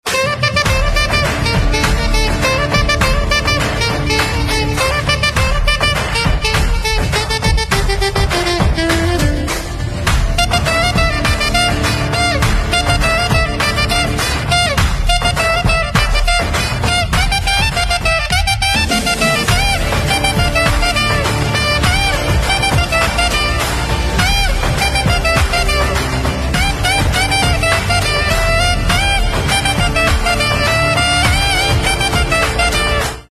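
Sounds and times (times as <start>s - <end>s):
saxophone instrumental ringtone: 0.1s - 33.2s.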